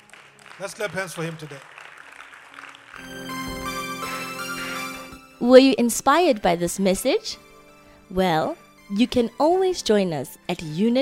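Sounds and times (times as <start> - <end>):
audience clapping hands: 0.0 - 5.2
speech: 0.6 - 1.8, 3.0 - 3.2, 5.4 - 7.4, 8.1 - 11.0.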